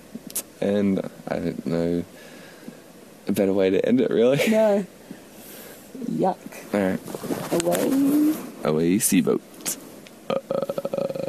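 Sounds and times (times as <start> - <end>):
speech: 0.6 - 2.4, 3.3 - 5.0, 6.1 - 10.4
voice imitating a creepy ghostly croak: 10.3 - 11.2.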